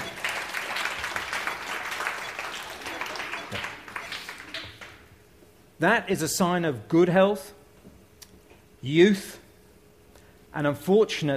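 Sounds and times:
people applauding: 0.0 - 5.1
speech: 3.5 - 3.7, 5.8 - 7.6, 8.8 - 9.4, 10.6 - 11.3.

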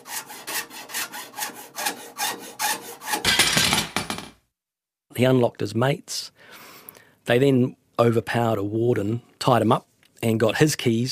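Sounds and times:
sawing: 0.0 - 3.4
speech: 5.2 - 6.3, 7.3 - 11.0.

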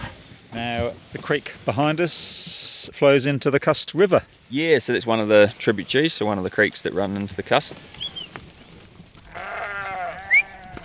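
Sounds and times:
speech: 0.5 - 8.0
ewes bleating: 9.3 - 10.8.

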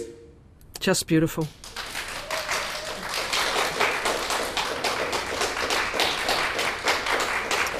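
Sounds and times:
speech: 0.9 - 1.6
audience applause after a live choir performance: 1.5 - 7.7.

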